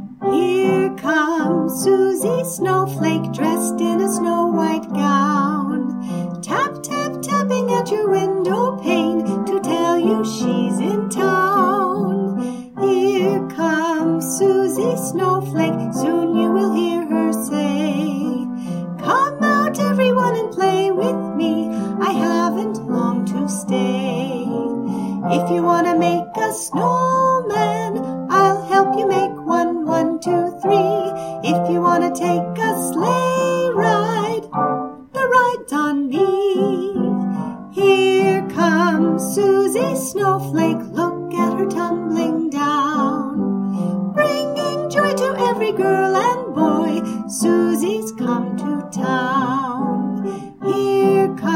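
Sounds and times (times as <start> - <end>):
vocals: 0.1 - 51.5.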